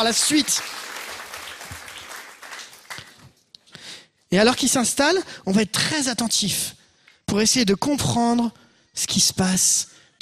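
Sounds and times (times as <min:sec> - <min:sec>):
speech: 0:00.0 - 0:00.9, 0:04.3 - 0:10.1
audience applause: 0:00.0 - 0:03.3.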